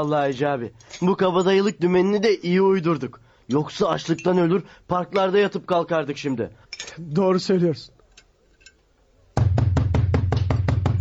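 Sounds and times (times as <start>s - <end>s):
speech: 0.0s - 8.0s
loud knocking on a door: 9.4s - 10.9s.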